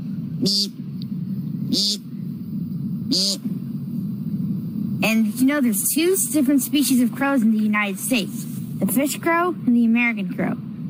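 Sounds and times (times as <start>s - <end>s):
low rumble: 0.0s - 10.8s
person imitating American woodcock peent call: 0.4s - 0.8s, 1.7s - 2.1s, 3.1s - 3.5s
speech: 0.4s - 0.8s, 1.7s - 2.0s, 5.0s - 10.7s.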